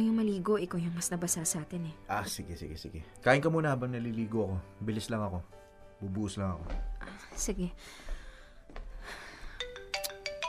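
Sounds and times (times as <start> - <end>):
speech: 0.0 - 8.1
mobile phone ringtone for an incoming call: 9.6 - 10.4.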